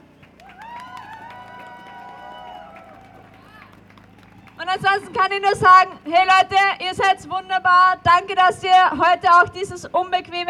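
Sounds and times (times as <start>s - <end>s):
crowd applause at outdoor demonstration: 0.3s - 5.2s
speech: 4.7s - 10.4s.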